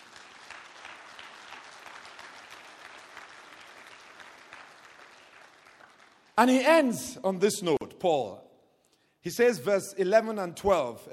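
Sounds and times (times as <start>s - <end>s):
audience applause: 0.0s - 6.4s
speech: 6.4s - 8.5s, 9.2s - 11.1s.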